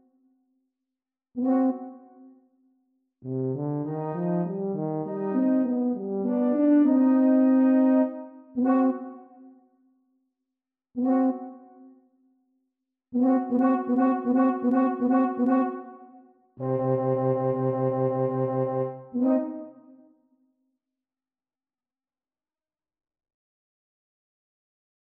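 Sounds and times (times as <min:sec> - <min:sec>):
two euphoniums and tuba playing: 0:03.3 - 0:09.0, 0:13.3 - 0:15.7, 0:16.6 - 0:19.4.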